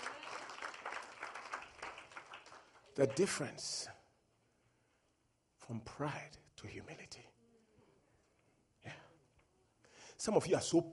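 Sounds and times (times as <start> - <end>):
congregation clapping for the Lord Jesus during a church service: 0.0 - 3.8
speech: 3.0 - 4.0, 5.7 - 7.4, 10.2 - 10.9.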